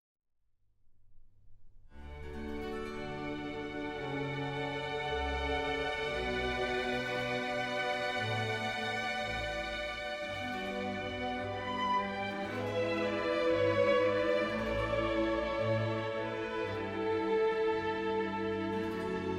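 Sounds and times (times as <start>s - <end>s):
classical string piece: 2.0s - 19.3s.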